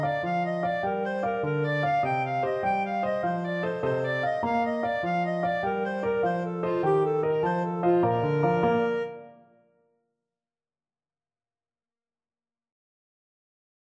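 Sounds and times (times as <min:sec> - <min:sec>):
clarinet melody: 0:00.0 - 0:09.7.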